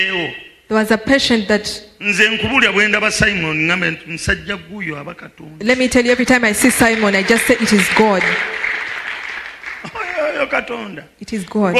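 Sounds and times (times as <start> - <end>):
speech: 0.0 - 8.6, 10.4 - 11.7
audience clapping: 5.9 - 10.8.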